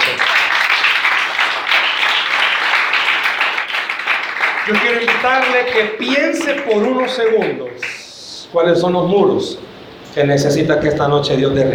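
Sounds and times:
audience applause: 0.0 - 8.0
speech: 4.7 - 11.7.

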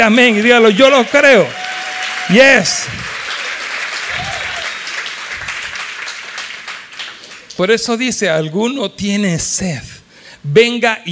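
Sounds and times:
speech: 0.0 - 1.6, 2.3 - 3.1, 7.6 - 11.1
crowd applause: 0.0 - 7.6
faint voices and cheers: 0.7 - 4.8.

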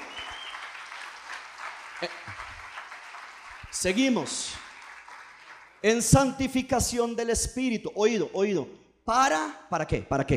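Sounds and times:
audience applauding: 0.0 - 6.6
speech: 2.0 - 2.5, 3.7 - 4.6, 5.8 - 10.3.

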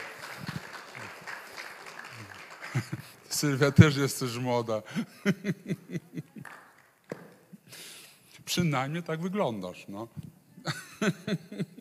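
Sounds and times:
audience applauding: 0.0 - 4.1, 6.2 - 7.3
laughter: 2.5 - 3.2, 4.9 - 6.6, 10.6 - 11.7
speech: 2.8 - 6.3, 8.5 - 11.7.

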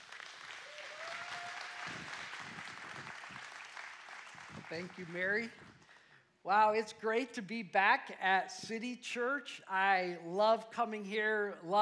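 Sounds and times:
audience applause at City Church welcoming a guest speaker: 0.0 - 5.5
speech: 4.7 - 5.7, 6.4 - 11.8.

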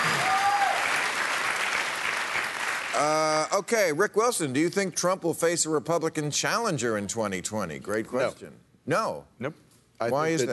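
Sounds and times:
audience applause: 0.0 - 3.2
speech: 3.0 - 10.5.

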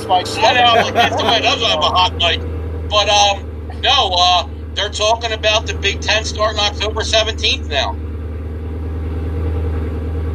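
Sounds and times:
Mustang car engine idling: 0.0 - 10.3
speech: 0.1 - 8.0
laughter: 0.2 - 2.4.

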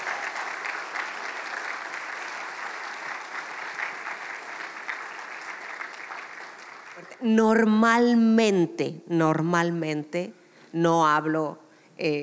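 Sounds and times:
church audience applause: 0.0 - 7.2
speech: 7.2 - 12.2.

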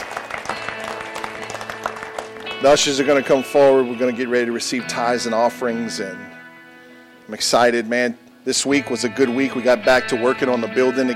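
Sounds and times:
church audience clapping hands: 0.0 - 3.0
speech: 2.6 - 6.4, 7.3 - 11.1.

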